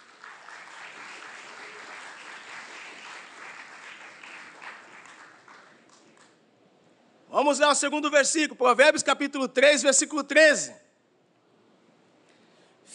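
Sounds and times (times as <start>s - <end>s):
church audience applauding: 0.0s - 6.4s
speech: 7.4s - 10.8s.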